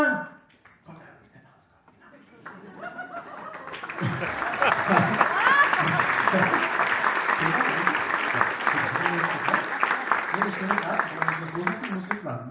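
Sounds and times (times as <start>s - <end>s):
laughter: 2.1s - 11.6s
crowd applauding: 2.4s - 12.5s
speech: 4.2s - 5.3s.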